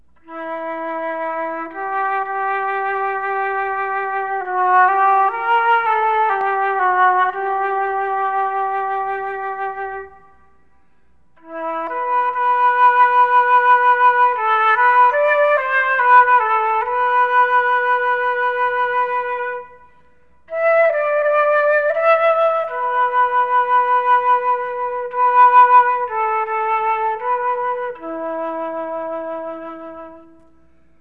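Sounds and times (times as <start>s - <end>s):
flute: 0.0s - 30.9s.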